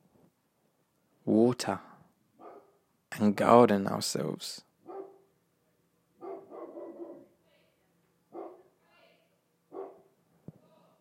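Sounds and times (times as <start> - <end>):
speech: 1.2 - 1.9, 3.2 - 4.7
dog barking outside: 2.4 - 2.8, 4.8 - 5.3, 6.2 - 7.3, 8.3 - 8.8, 9.7 - 10.1.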